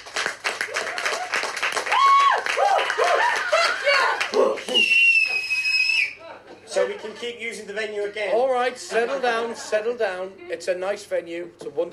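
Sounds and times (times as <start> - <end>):
live crowd clapping: 0.0 - 5.6
live crowd cheering and whooping: 0.6 - 6.3
laughter: 2.9 - 4.8, 6.2 - 7.5, 8.5 - 10.3
sharp whistles: 4.7 - 6.2
speech: 7.2 - 11.9.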